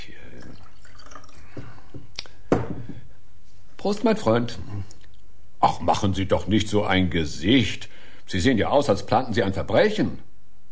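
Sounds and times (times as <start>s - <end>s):
drink pouring into a glass: 0.2s - 2.0s
speech: 3.8s - 4.8s, 5.6s - 10.3s.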